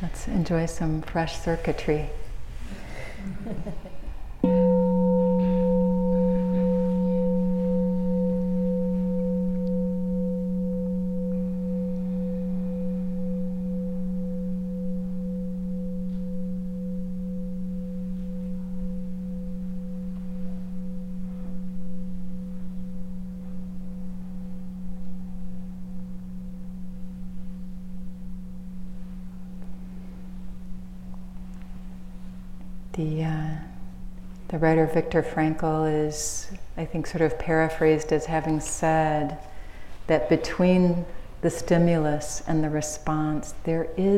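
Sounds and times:
speech: 0:00.0 - 0:02.2, 0:03.2 - 0:04.0, 0:34.6 - 0:39.5, 0:40.1 - 0:44.1
bell ringing: 0:04.4 - 0:27.1.

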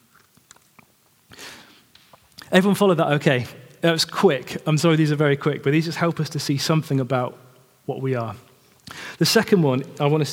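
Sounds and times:
person sipping water: 0:00.1 - 0:02.5
speech: 0:02.5 - 0:10.3.

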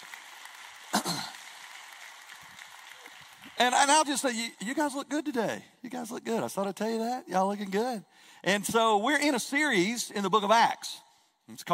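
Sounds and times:
audience clapping hands: 0:00.0 - 0:05.0
speech: 0:03.6 - 0:11.7.

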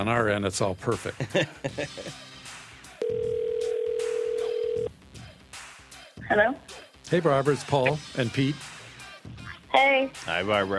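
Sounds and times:
speech: 0:00.0 - 0:02.3, 0:06.3 - 0:10.7
laughter: 0:01.2 - 0:02.3
telephone call ringing: 0:03.0 - 0:04.9.

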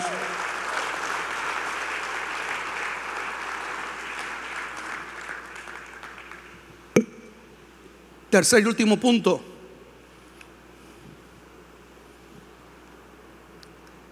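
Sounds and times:
large audience applauding: 0:00.0 - 0:06.7
speech: 0:08.3 - 0:09.5.

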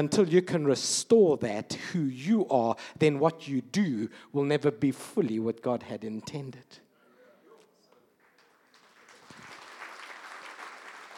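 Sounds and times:
speech: 0:00.0 - 0:06.8
audience clapping: 0:08.2 - 0:11.1.

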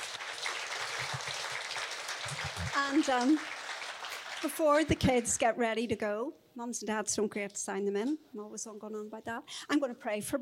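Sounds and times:
audience applause: 0:00.0 - 0:05.4
speech: 0:02.8 - 0:03.6, 0:04.4 - 0:10.4.

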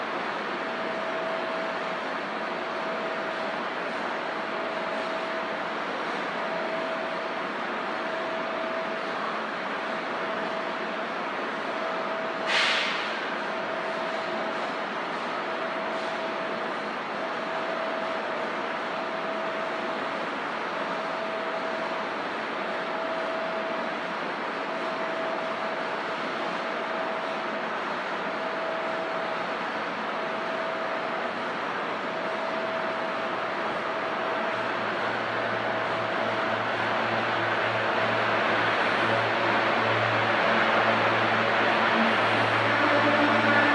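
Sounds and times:
Suburban Station train platform rumble and hiss: 0:00.0 - 0:43.7.

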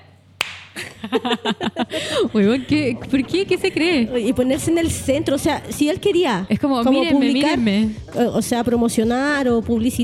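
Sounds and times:
hosts clapping applause: 0:00.4 - 0:00.8
laughter: 0:00.8 - 0:03.6
speech: 0:01.1 - 0:10.0.

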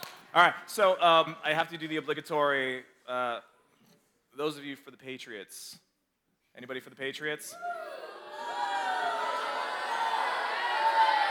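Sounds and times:
speech: 0:00.4 - 0:03.5, 0:04.4 - 0:05.8, 0:06.6 - 0:08.1
audience booing: 0:07.5 - 0:11.2.

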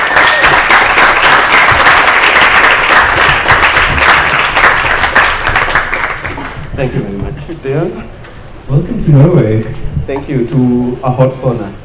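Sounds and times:
audience applause: 0:00.0 - 0:06.8
speech: 0:06.8 - 0:08.1, 0:08.7 - 0:11.8.

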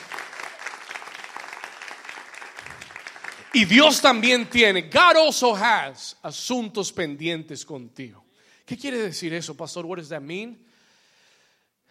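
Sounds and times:
audience applause: 0:00.0 - 0:04.2
speech: 0:03.6 - 0:10.7.

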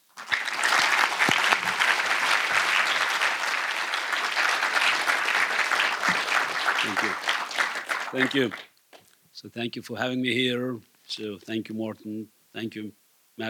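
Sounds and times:
crowd clapping: 0:00.0 - 0:08.8
speech: 0:08.1 - 0:08.7, 0:09.4 - 0:13.4.

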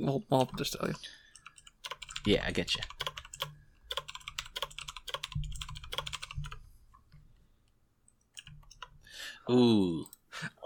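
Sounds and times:
speech: 0:00.0 - 0:01.2, 0:02.2 - 0:03.0, 0:09.5 - 0:10.6
typing on a computer keyboard: 0:01.3 - 0:06.6, 0:08.3 - 0:09.0.

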